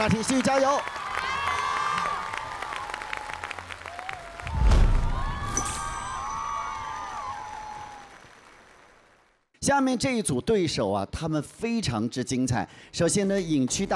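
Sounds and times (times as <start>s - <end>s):
speech: 0.0s - 1.0s, 9.6s - 13.9s
audience applause on a TV dance competition show: 0.0s - 9.4s.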